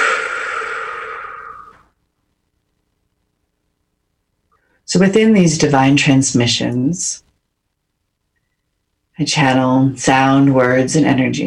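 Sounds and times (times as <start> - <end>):
deep breath during a guided breathing exercise: 0.0 - 1.9
speech: 4.9 - 7.2, 9.2 - 11.4.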